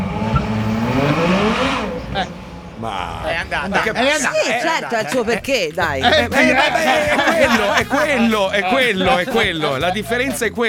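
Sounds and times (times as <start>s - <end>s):
V12 car engine revving and pulling away: 0.0s - 10.4s
laughter: 1.0s - 10.6s
speech: 2.2s - 10.6s.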